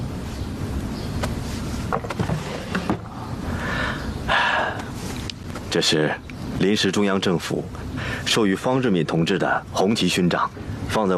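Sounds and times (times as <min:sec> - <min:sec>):
steady low hiss: 0:00.0 - 0:11.1
drawer sliding open: 0:01.9 - 0:03.1
speech: 0:05.7 - 0:11.1.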